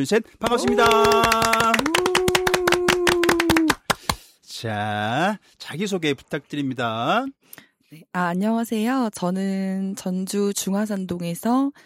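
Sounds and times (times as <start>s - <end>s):
speech: 0.0s - 2.1s, 4.6s - 11.8s
studio guests clapping: 0.4s - 4.2s.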